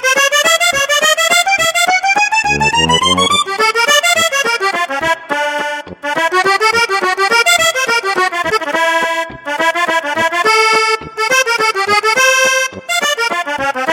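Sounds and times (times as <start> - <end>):
bal musette accordion music: 0.0 - 13.9.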